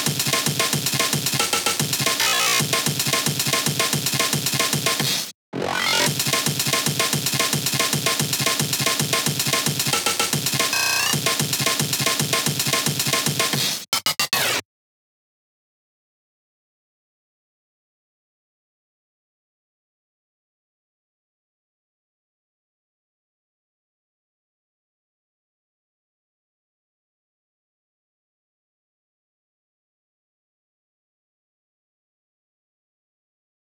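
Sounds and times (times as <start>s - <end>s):
breakbeat: 0.0s - 14.6s.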